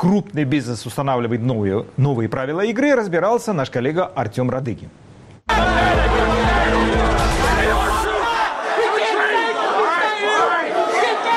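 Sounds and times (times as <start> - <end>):
speech: 0.0 - 5.0
angry crowd of rioters shouting: 5.5 - 11.3.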